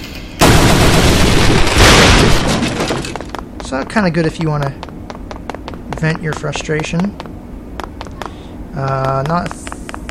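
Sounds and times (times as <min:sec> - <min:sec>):
door being smashed in a video game: 0:00.4 - 0:03.4
speech: 0:03.7 - 0:04.9, 0:06.0 - 0:07.3, 0:08.8 - 0:09.6.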